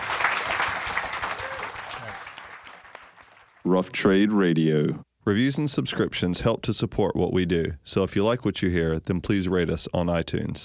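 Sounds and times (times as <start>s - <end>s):
audience applause for panellists: 0.0s - 3.6s
speech: 3.7s - 10.6s.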